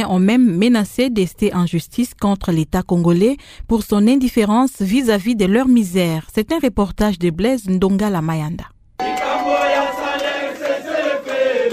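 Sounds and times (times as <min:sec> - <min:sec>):
speech: 0:00.0 - 0:09.3
protesting teachers singing and shouting: 0:09.0 - 0:11.7.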